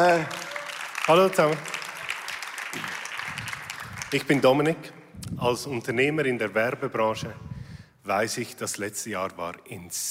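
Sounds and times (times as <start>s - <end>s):
speech: 0.0s - 0.4s, 1.1s - 1.7s, 4.1s - 10.0s
audience applause: 0.0s - 4.6s.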